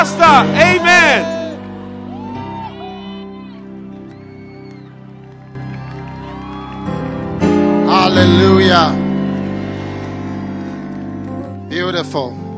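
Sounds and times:
music: 0:00.0 - 0:12.5
speech: 0:00.2 - 0:01.3, 0:11.7 - 0:12.4
church congregation shouting praise and cheering: 0:00.5 - 0:08.5, 0:11.4 - 0:12.5
church congregation clapping: 0:03.9 - 0:12.5.

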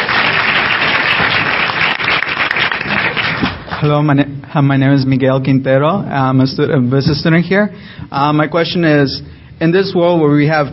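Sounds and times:
audience round of applause: 0:00.0 - 0:03.9
speech: 0:03.8 - 0:10.7.

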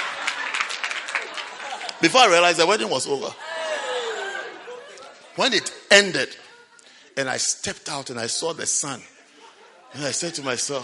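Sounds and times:
wedding guests clapping: 0:00.0 - 0:02.6
laughter: 0:00.0 - 0:07.5, 0:08.7 - 0:10.8
speech: 0:02.0 - 0:03.5, 0:05.4 - 0:06.4, 0:07.2 - 0:09.2, 0:09.9 - 0:10.8.

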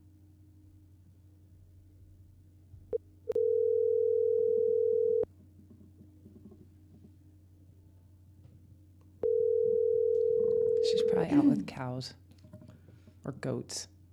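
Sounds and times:
low hum: 0:00.0 - 0:14.1
telephone tone while placing a call: 0:03.3 - 0:05.3, 0:09.2 - 0:11.2
speech: 0:11.7 - 0:12.2, 0:13.3 - 0:14.0.

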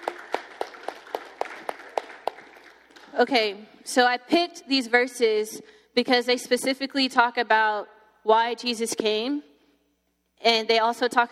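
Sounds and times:
hands clapping: 0:00.0 - 0:03.2
speech: 0:03.1 - 0:09.5, 0:10.4 - 0:11.3.

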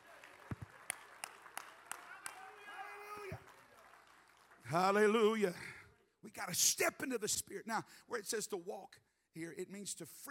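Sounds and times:
audience clapping hands in a steady rhythmic beat: 0:00.0 - 0:05.6
speech: 0:04.7 - 0:10.3.

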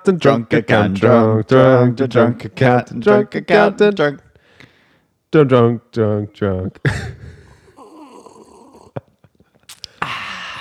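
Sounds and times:
speech: 0:00.0 - 0:04.2, 0:05.3 - 0:07.2
person slurping a cocktail from a cup: 0:09.7 - 0:10.5.

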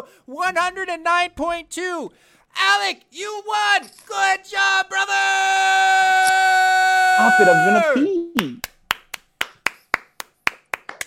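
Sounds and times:
speech: 0:00.0 - 0:08.6
sharp crisp claps: 0:08.4 - 0:11.0.

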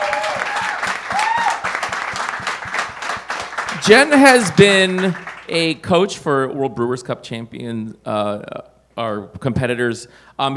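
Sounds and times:
audience applause: 0:00.0 - 0:05.5
speech: 0:03.9 - 0:10.5.

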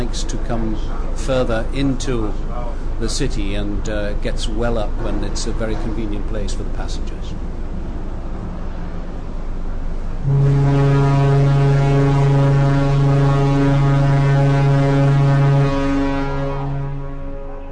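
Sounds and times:
low rumble: 0:00.0 - 0:17.7
speech: 0:00.2 - 0:07.5, 0:10.3 - 0:10.8
ship's whistle blast: 0:10.2 - 0:17.7.

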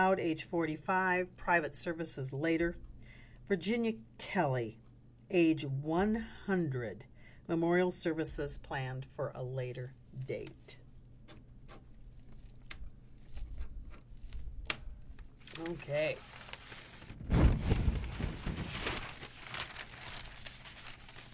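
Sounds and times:
speech: 0:00.0 - 0:02.9, 0:03.5 - 0:10.8, 0:15.6 - 0:16.4
newspaper pages rattling: 0:12.2 - 0:21.3.

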